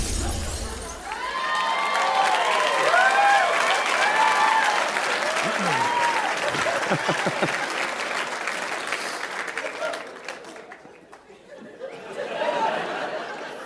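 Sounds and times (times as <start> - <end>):
audience applause after song: 1.0 - 11.5
laughter: 5.2 - 13.6.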